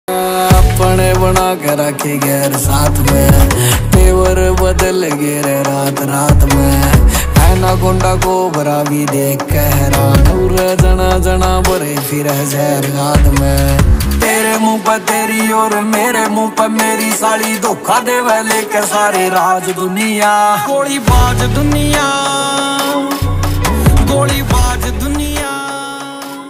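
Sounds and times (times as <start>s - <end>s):
Haryanvi ringtone music: 0.1s - 26.4s.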